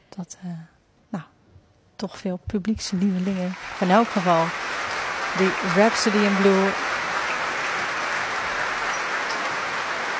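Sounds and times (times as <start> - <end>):
speech: 0.2 - 1.3, 2.0 - 6.9
concert hall audience applause: 2.9 - 10.1.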